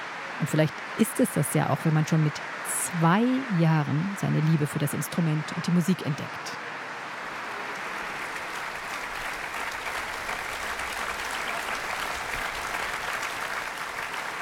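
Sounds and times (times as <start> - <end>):
speech: 0.4 - 6.6
large concert audience applause in a reverberant church: 7.4 - 14.4.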